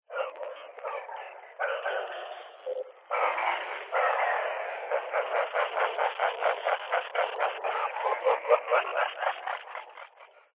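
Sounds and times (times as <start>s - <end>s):
eerie glitchy male vocal noises from a ghost EVP spirit box: 0.1s - 10.5s
glitchy laughter from a spirit box: 3.1s - 10.5s.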